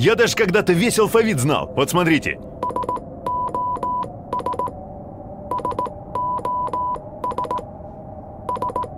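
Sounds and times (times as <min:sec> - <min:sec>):
speech: 0:00.0 - 0:02.5
SOS signal in Morse code: 0:02.6 - 0:04.8, 0:05.5 - 0:07.6, 0:08.5 - 0:08.9.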